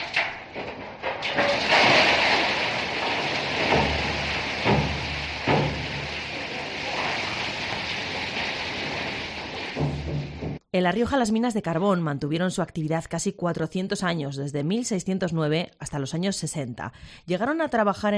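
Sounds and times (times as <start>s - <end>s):
mine cart tipped over by hand: 0.0s - 10.6s
speech: 10.8s - 18.1s.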